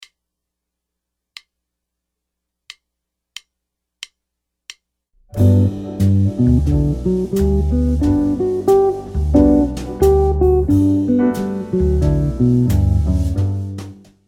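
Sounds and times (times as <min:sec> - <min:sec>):
guitar arpeggios: 0:05.4 - 0:13.4.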